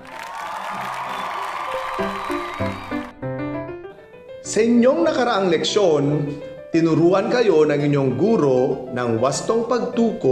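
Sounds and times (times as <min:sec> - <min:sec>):
applause: 0:00.0 - 0:03.1
speech: 0:04.5 - 0:10.2.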